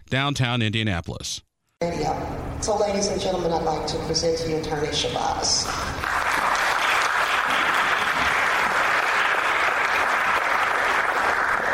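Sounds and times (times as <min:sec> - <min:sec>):
speech: 0:00.1 - 0:06.0
audience applause: 0:06.0 - 0:11.7.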